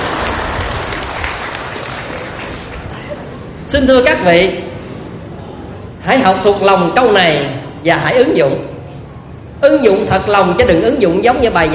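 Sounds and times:
audience hand clapping at a Buddhist dharma talk: 0.0s - 3.2s
speech: 3.7s - 4.7s, 6.0s - 8.7s, 9.6s - 11.7s.

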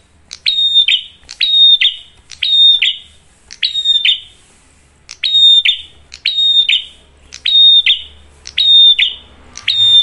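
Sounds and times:
prinia singing bright high whistled phrases: 0.3s - 4.4s, 5.1s - 10.0s.

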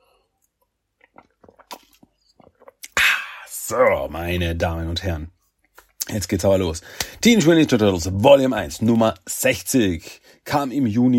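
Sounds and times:
sipping a drink after a toast: 0.4s - 3.7s
speech: 3.7s - 5.4s, 6.1s - 11.1s.

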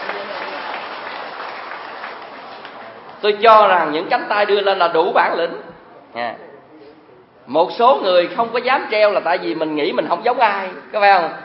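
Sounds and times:
audience applause during a Buddhist sermon: 0.0s - 3.2s
speech: 3.2s - 6.5s, 7.5s - 11.4s.

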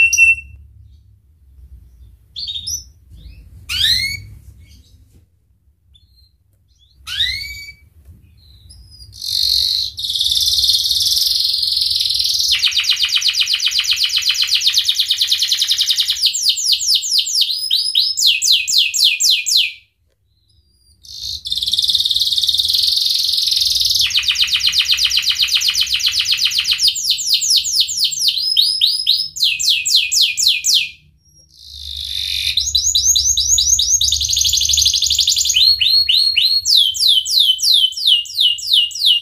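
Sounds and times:
canary song: 0.0s - 5.1s, 5.8s - 39.2s.

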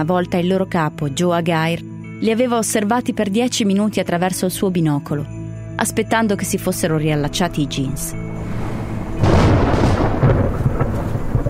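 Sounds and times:
speech: 0.0s - 8.7s
rolling thunder over a mountain: 8.1s - 11.4s
wind: 8.1s - 11.4s
rain hissing: 8.2s - 11.4s.

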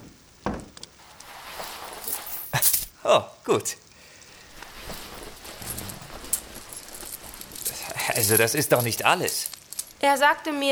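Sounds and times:
coins jingling and clinking as they are handed over: 1.0s - 3.0s, 4.5s - 10.0s
speech: 3.0s - 3.8s, 8.2s - 10.6s.

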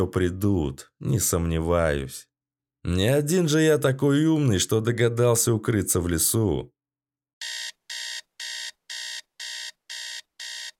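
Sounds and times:
speech: 0.0s - 6.8s
alarm clock ringing loudly with harsh metallic ringing: 7.4s - 10.7s.

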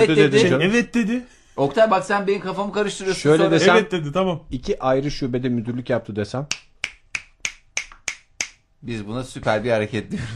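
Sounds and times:
speech: 0.0s - 6.6s, 8.8s - 10.3s
finger snapping as quiet applause: 6.5s - 8.6s.

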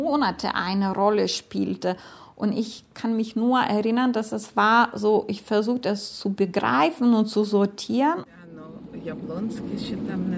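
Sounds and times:
speech: 0.0s - 8.4s, 9.0s - 10.3s
car engine and road rumble driving through Kaunas: 8.5s - 10.3s.

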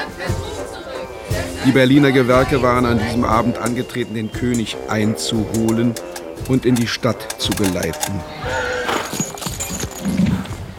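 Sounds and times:
busy background: 0.0s - 10.7s
speech: 1.6s - 8.7s
horses' hooves clip-clopping in a ceremonial street procession in Berlin: 5.5s - 10.7s.

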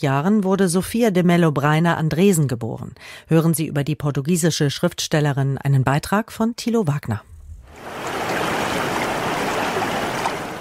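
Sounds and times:
speech: 0.0s - 8.1s
ocean surf breaking on a beach with algae-covered stones south of Porto, Portugal: 7.8s - 10.5s.

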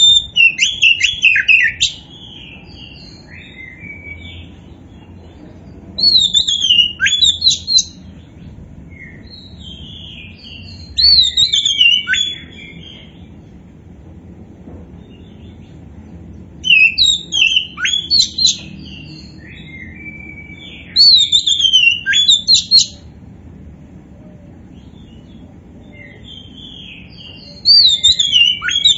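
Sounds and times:
Oriental magpie-robin song: 0.0s - 4.8s, 6.0s - 8.0s, 8.9s - 13.3s, 16.6s - 23.1s, 24.8s - 28.9s
soft steady hum: 0.0s - 28.9s.

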